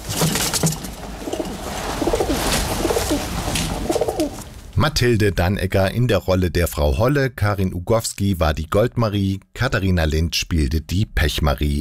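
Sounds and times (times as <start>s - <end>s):
pigeons cooing: 1.2s - 4.5s
speech: 4.9s - 11.8s.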